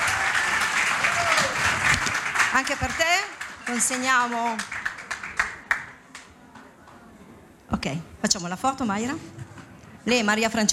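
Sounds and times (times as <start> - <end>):
scattered audience handclaps: 0.0 - 6.7
speech: 2.6 - 4.8, 7.8 - 9.4, 10.0 - 10.7.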